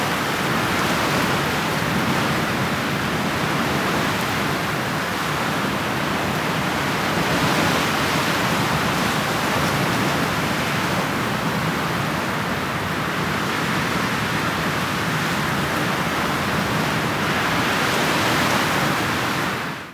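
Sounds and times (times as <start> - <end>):
wind in the mountains: 0.0 - 19.9.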